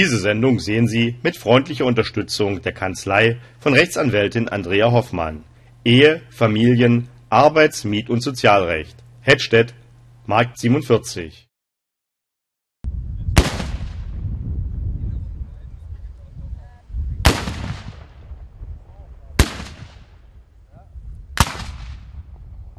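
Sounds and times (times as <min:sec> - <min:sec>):
low outdoor rumble: 0:00.0 - 0:11.4, 0:12.9 - 0:22.7
speech: 0:00.0 - 0:11.4
black powder salute cannon shots: 0:13.4 - 0:14.2, 0:17.2 - 0:18.3, 0:19.3 - 0:20.2, 0:21.4 - 0:22.3.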